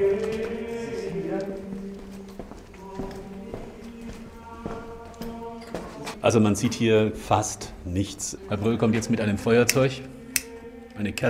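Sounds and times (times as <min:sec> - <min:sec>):
footsteps of a man walking in a wine cellar: 0:00.0 - 0:06.3
speech: 0:06.2 - 0:10.1, 0:11.0 - 0:11.2.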